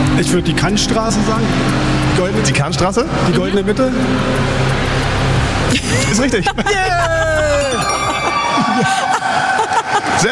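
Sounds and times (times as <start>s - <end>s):
speech: 0.2s - 4.8s, 5.7s - 7.2s, 8.8s - 9.2s
laughter: 3.2s - 4.0s, 5.7s - 10.2s
several girls screaming loudly: 6.9s - 10.2s.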